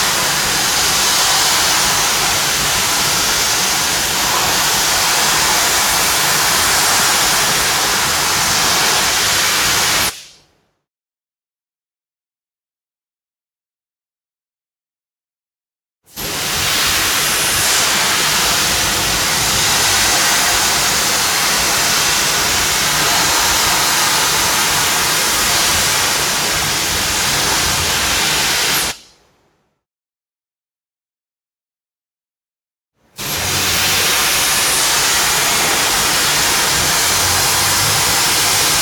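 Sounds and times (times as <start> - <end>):
industrial factory machine cutting steel: 0.0 - 10.2, 16.7 - 29.0, 33.2 - 38.8.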